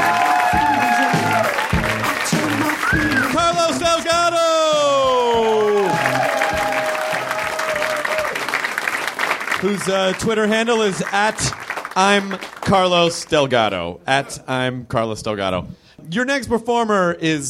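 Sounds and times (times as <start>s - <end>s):
comedy-show audience applause: 0.0s - 3.8s, 5.0s - 12.7s
comedy-show audience cheering: 0.0s - 11.4s
speech: 9.7s - 17.4s.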